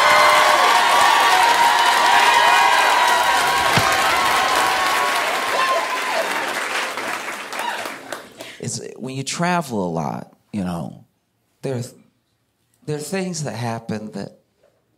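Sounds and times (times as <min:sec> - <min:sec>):
comedy show crowd whooping: 0:00.0 - 0:08.4
comedy show audience clapping: 0:00.0 - 0:08.6
speech: 0:09.2 - 0:11.0, 0:11.6 - 0:12.0, 0:12.8 - 0:14.4.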